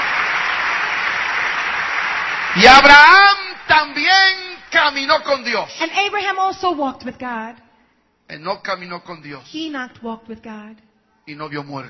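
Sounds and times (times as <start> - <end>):
church congregation clapping during a bilingual sermon: 0.0 - 5.0
speech: 2.6 - 7.6, 8.3 - 11.8.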